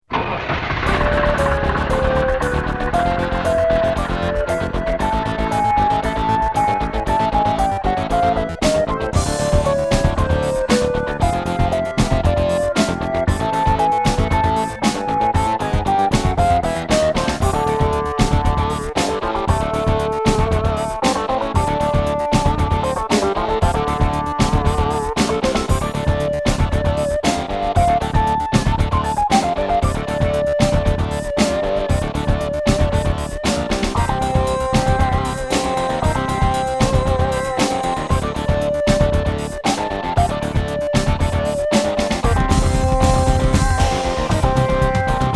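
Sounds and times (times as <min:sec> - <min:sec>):
PC Engine CD-ROM level 3 video game background music: 0:00.7 - 0:45.3.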